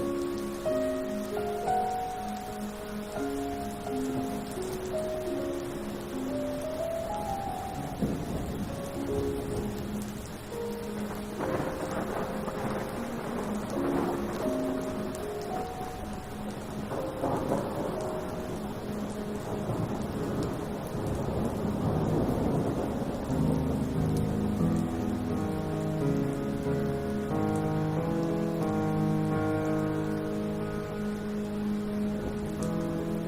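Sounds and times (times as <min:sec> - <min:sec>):
classical piano piece: 0:00.0 - 0:33.2
thunderstorm ambience: 0:07.7 - 0:26.5.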